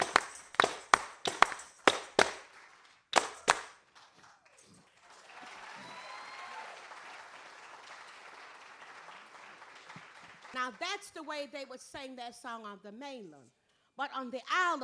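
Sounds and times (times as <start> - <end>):
sharp rhythmic hand claps: 0.0 - 5.8, 6.5 - 10.8
speech: 10.6 - 14.8.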